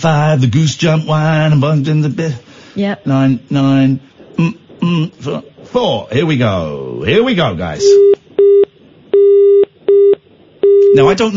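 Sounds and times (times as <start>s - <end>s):
speech: 0.0s - 8.6s, 11.0s - 11.3s
telephone engaged tone: 7.8s - 11.1s.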